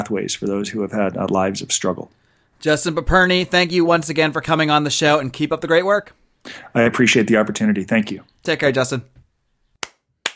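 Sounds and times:
speech: 0:00.1 - 0:09.2
person clapping hands for a guest: 0:09.8 - 0:10.3.

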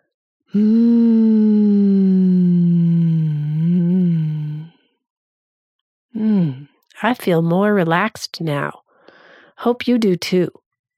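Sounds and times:
speech: 0:00.5 - 0:00.9, 0:07.0 - 0:08.8, 0:09.6 - 0:10.6
person humming while breathing out: 0:00.5 - 0:04.7, 0:06.2 - 0:06.7.

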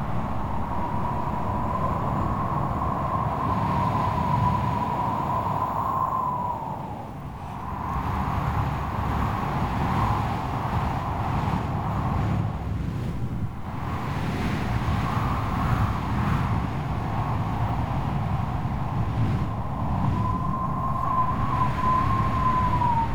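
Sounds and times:
wavering wind whistle: 0:00.0 - 0:11.3, 0:17.3 - 0:23.1
strong stormy wind roaring: 0:00.0 - 0:23.1.

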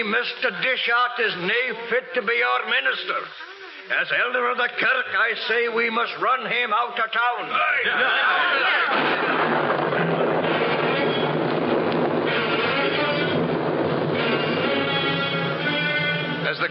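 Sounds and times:
speech: 0:00.0 - 0:09.8
thunderstorm breaking: 0:08.9 - 0:15.7.

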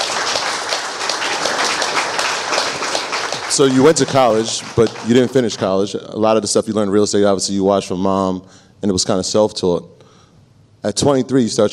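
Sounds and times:
crowd applauding: 0:00.0 - 0:05.8
speech: 0:03.6 - 0:10.0, 0:10.8 - 0:11.7.

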